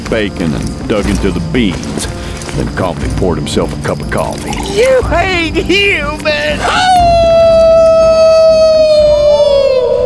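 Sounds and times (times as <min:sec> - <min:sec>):
speech: 0:00.1 - 0:07.4
wolf howling across the valley: 0:06.7 - 0:10.0.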